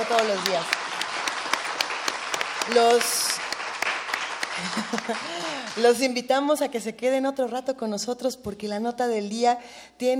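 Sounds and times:
crowd applauding: 0.0s - 6.1s
speech: 0.1s - 0.8s, 2.7s - 3.4s, 4.6s - 10.1s
laughter: 4.4s - 5.7s.

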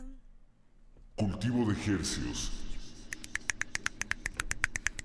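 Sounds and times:
speech: 1.2s - 2.6s
finger snapping in place of applause: 3.1s - 5.0s.

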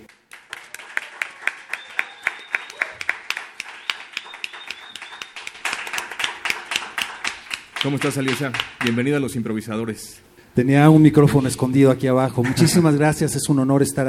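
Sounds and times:
audience applause: 0.0s - 9.1s
speech: 7.8s - 14.0s.

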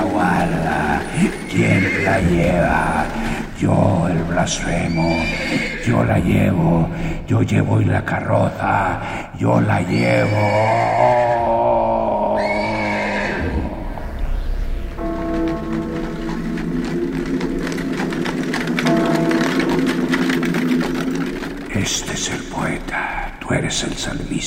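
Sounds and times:
harnessed horses' restless hooves pawing: 0.0s - 6.7s, 15.0s - 24.2s
harnessed horses neighing and whinnying: 0.0s - 7.2s, 9.5s - 14.2s, 15.0s - 23.9s
speech: 1.2s - 11.3s, 21.9s - 24.4s.

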